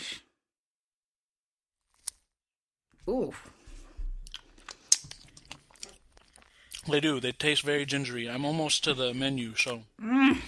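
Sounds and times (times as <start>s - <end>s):
speech: 3.1s - 3.6s, 6.8s - 10.4s
biting a gingerbread-flavoured treat: 4.2s - 6.9s
moist chewing of a gingerbread-flavoured treat: 4.2s - 7.2s.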